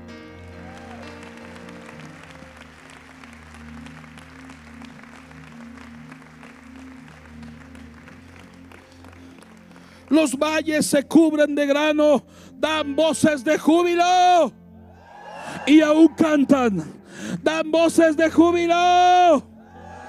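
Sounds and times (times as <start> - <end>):
audience clapping hands loudly: 0.5 - 10.8
speech: 10.1 - 14.6, 15.7 - 19.5.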